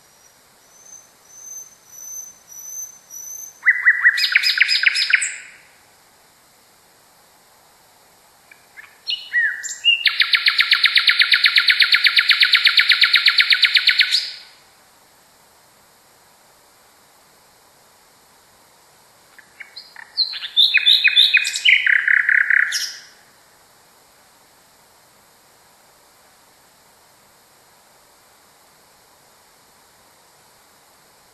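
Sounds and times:
common nightingale singing: 0:00.0 - 0:05.7, 0:08.4 - 0:14.6, 0:19.3 - 0:23.2.

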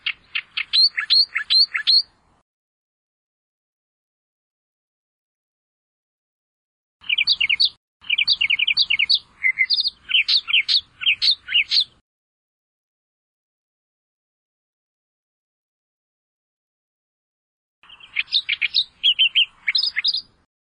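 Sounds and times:
Australian reed warbler song: 0:00.0 - 0:02.4, 0:07.0 - 0:12.0, 0:17.8 - 0:20.5.

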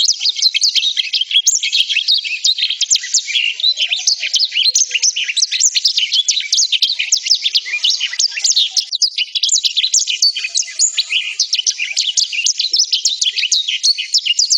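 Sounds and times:
black-throated canary warbling song: 0:00.0 - 0:14.5.

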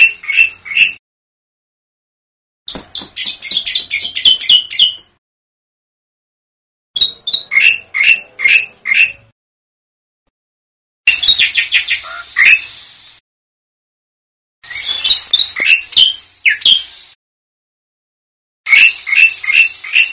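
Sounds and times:
black-winged myna chirping: 0:00.0 - 0:01.0, 0:02.7 - 0:05.1, 0:07.0 - 0:09.3, 0:11.1 - 0:12.8, 0:14.6 - 0:17.2, 0:18.7 - 0:20.1.

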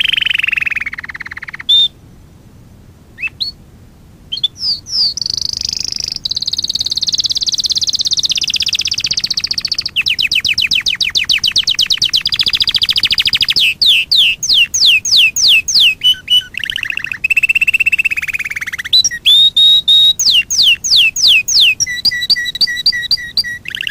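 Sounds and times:
Fife canary singing: 0:00.0 - 0:02.0, 0:03.2 - 0:03.6, 0:04.3 - 0:23.8.

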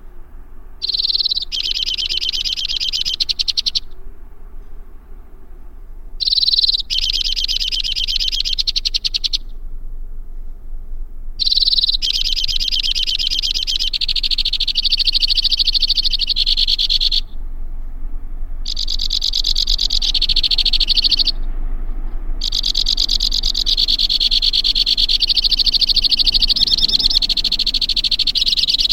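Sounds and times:
white-winged crossbill delivering rapid high rattling trills: 0:00.8 - 0:04.7, 0:06.0 - 0:09.8, 0:11.4 - 0:17.4, 0:18.6 - 0:28.9.

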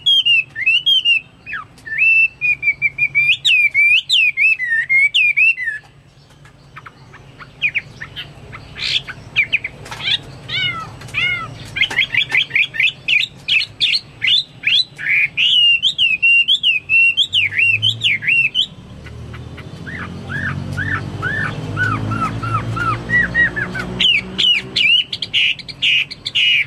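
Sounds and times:
Chinese hwamei song: 0:00.0 - 0:05.9, 0:07.6 - 0:18.8, 0:19.8 - 0:26.6.

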